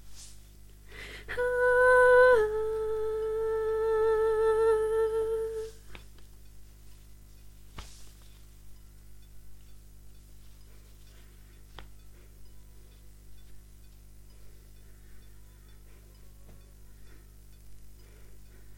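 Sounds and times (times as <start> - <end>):
soprano voice: 1.0 - 6.0.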